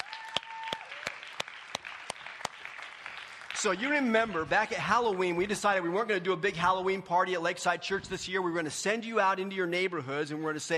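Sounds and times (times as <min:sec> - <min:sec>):
church congregation clapping to welcome a guest: 0:00.0 - 0:05.4
speech: 0:03.6 - 0:10.7.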